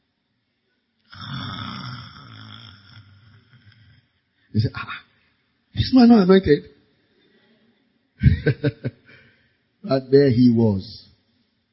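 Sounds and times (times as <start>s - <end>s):
voice imitating snoring: 1.1s - 4.1s
speech: 4.6s - 5.0s, 5.8s - 6.7s, 8.4s - 9.0s, 9.9s - 11.1s
laughter: 8.2s - 9.2s.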